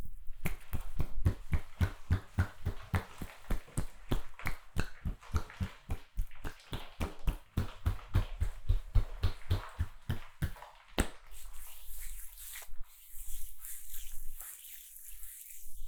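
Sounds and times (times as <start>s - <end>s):
eye and shoulder massage ASMR: 0.3s - 12.6s.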